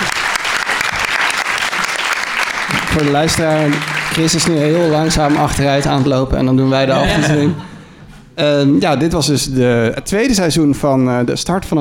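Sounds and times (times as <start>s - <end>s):
applause for a departing guest: 0.0s - 6.4s
speech: 3.0s - 7.7s, 8.4s - 11.7s
laughter: 4.4s - 8.0s.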